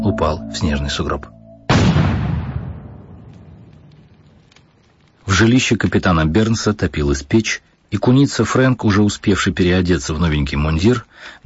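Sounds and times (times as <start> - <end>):
speech: 0.2 - 1.4, 5.4 - 11.4
pistol gunshot: 1.7 - 3.2.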